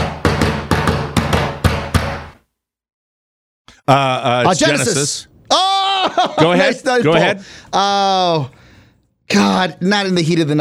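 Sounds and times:
knocking on a door: 0.0 - 2.3
speech: 3.9 - 8.6, 9.3 - 10.5
laughter: 4.5 - 7.0.

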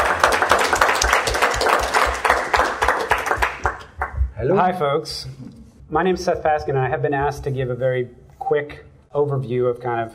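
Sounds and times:
audience applause: 0.0 - 4.2
speech: 4.4 - 10.1.

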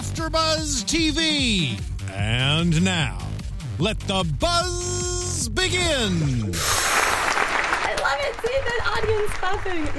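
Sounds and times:
speech: 0.2 - 6.9, 8.0 - 9.9
studio audience clapping: 6.8 - 9.9.

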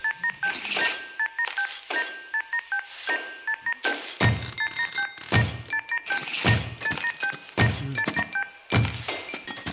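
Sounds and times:
telephone beeps playing a Christmas melody: 0.0 - 9.7
thumps, clunks and stamps on office objects: 3.8 - 5.8, 6.4 - 9.7.

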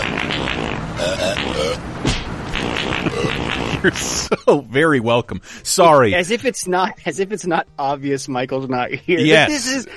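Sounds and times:
fart sound effect from GTA video game: 0.0 - 4.0
speech: 3.2 - 9.9.

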